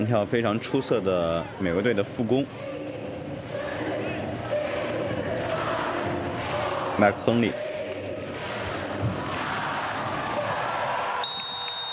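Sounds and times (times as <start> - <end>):
speech: 0.0 - 2.8, 7.0 - 7.7
crowd noise: 0.0 - 11.9
referee's whistle opening a volleyball match between Brazil and the USA: 11.2 - 11.9.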